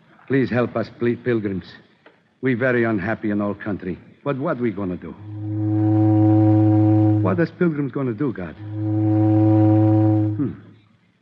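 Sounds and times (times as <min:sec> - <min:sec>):
speech: 0:00.3 - 0:05.4, 0:07.2 - 0:08.6, 0:10.4 - 0:10.6
steamboat whistle blowing one long low tone: 0:05.2 - 0:07.5, 0:08.5 - 0:10.6.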